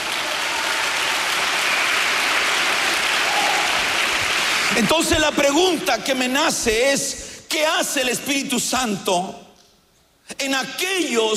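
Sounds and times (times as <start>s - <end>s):
audience clapping: 0.0s - 5.1s
speech: 4.8s - 9.4s, 10.3s - 11.3s.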